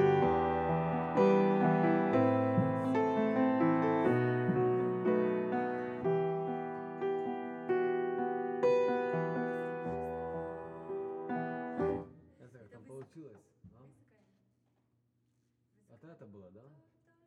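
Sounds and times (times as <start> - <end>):
piano: 0.0 - 12.2.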